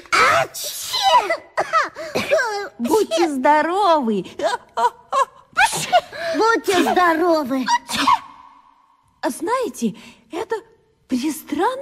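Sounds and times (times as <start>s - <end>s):
children sneezing at the strong smell of mint, oregano and chamomile: 0.3s - 2.8s, 5.6s - 8.4s
speech: 0.4s - 8.2s, 9.2s - 11.8s.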